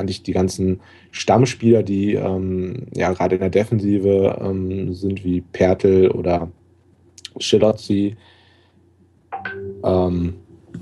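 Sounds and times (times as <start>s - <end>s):
speech: 0.0s - 6.6s, 7.4s - 8.3s, 9.5s - 10.4s
phone notification alert: 9.4s - 10.0s.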